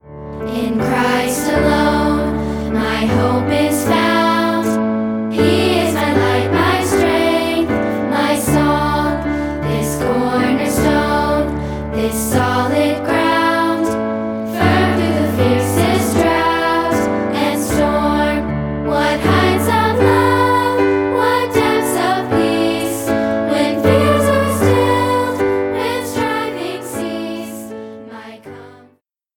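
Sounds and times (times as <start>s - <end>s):
piano: 0.0s - 29.0s.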